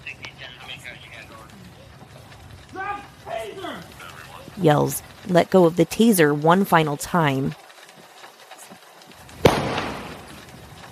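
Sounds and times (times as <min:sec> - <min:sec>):
speech: 0:04.6 - 0:07.6
gunshot: 0:09.4 - 0:10.2.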